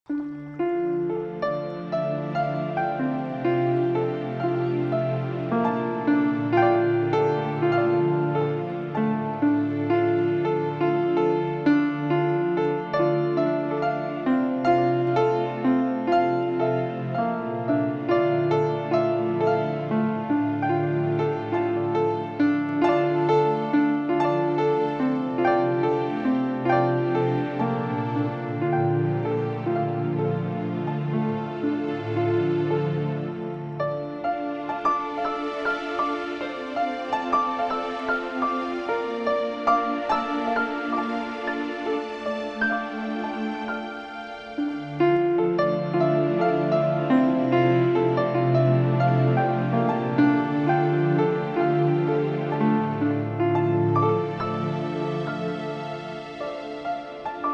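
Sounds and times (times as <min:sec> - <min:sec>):
romantic piano music: 0:00.1 - 0:57.5.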